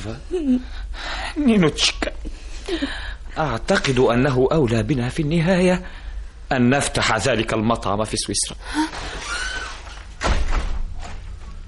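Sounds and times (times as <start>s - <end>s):
speech: 0.0s - 9.3s
faint hiss: 0.0s - 11.6s
door opening as someone enters: 8.9s - 11.4s.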